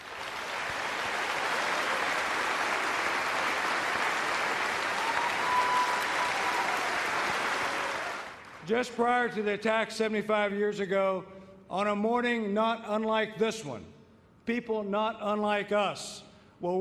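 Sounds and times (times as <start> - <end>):
audience applause: 0.0 - 8.7
speech: 8.7 - 16.7.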